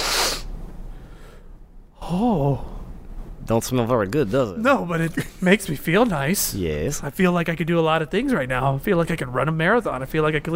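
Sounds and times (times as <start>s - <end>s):
nasal sniff of a powder: 0.0s - 0.5s
faint low hum: 0.5s - 10.5s
speech: 2.1s - 2.7s, 3.4s - 10.5s.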